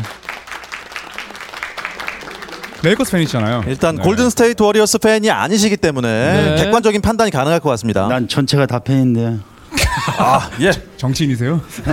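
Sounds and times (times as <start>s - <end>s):
audience applause: 0.0s - 4.4s
speech: 2.8s - 11.9s
laughter: 9.7s - 10.9s.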